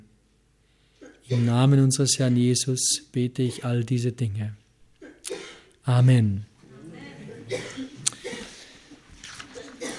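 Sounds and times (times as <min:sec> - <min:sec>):
person coughing: 0:01.0 - 0:01.6, 0:05.0 - 0:05.7, 0:07.3 - 0:08.6, 0:09.4 - 0:09.9
speech: 0:01.3 - 0:04.6, 0:05.8 - 0:06.5, 0:07.5 - 0:07.9.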